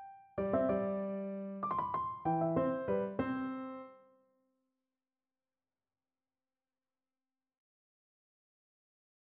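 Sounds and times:
piano piece: 0.0s - 4.1s.

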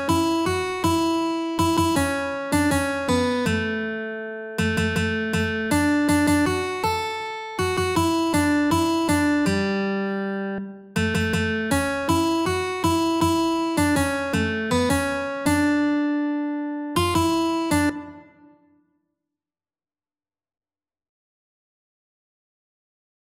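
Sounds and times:
guitar duet: 0.0s - 18.6s.

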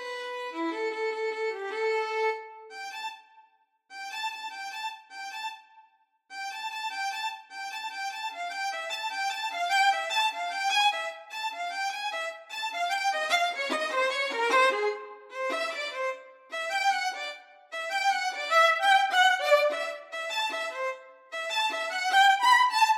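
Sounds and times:
violin duet: 0.0s - 2.9s, 8.0s - 22.9s.

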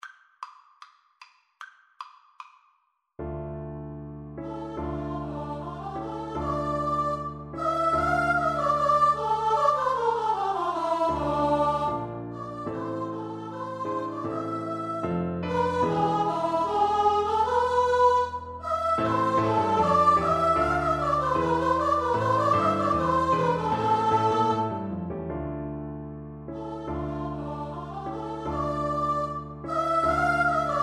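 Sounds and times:
vocal duet: 4.5s - 24.9s, 26.6s - 30.8s.

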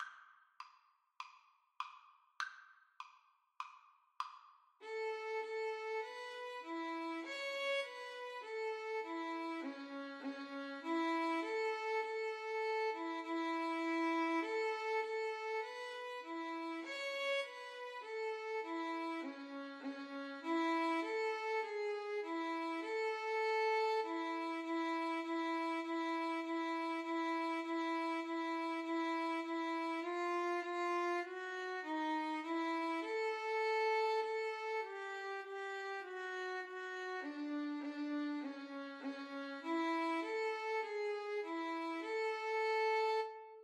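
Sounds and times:
violin duet: 4.8s - 43.6s.

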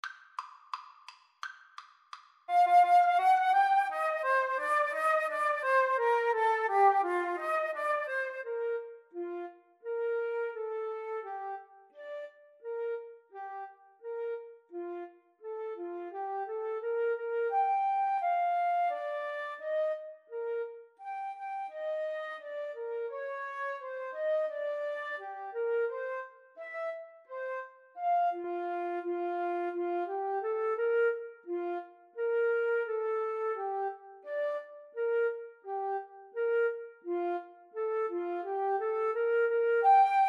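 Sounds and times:
flute duet: 2.5s - 40.2s.

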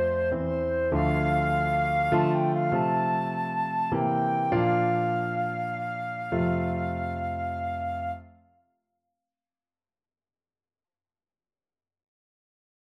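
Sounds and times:
flute and clarinet duet: 0.0s - 8.4s.

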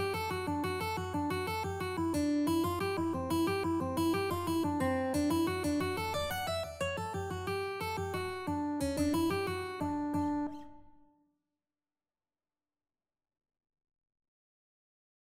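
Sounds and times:
mandolin: 0.0s - 10.9s.

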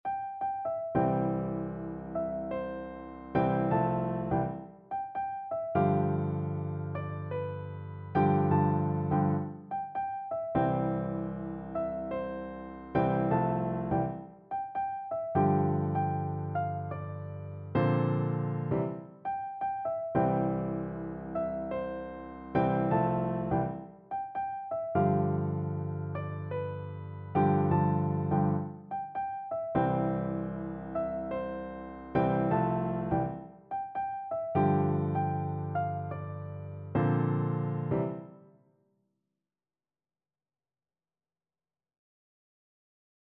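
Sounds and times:
piano duet: 0.0s - 38.6s.

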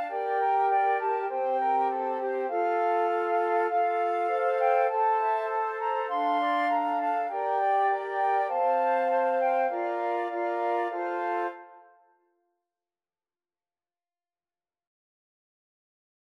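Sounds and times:
flute quartet: 0.0s - 12.0s.

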